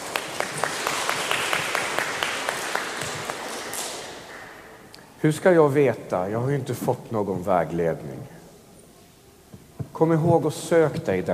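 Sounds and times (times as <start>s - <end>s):
applause: 0.0s - 4.6s
speech: 5.2s - 8.4s, 10.0s - 11.3s.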